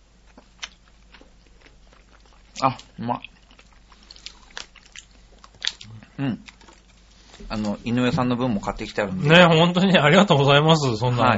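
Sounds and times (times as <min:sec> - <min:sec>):
chewing warabi mochi from Kofukudo: 0:00.0 - 0:08.2
speech: 0:02.6 - 0:03.3, 0:06.2 - 0:06.6, 0:07.5 - 0:11.3.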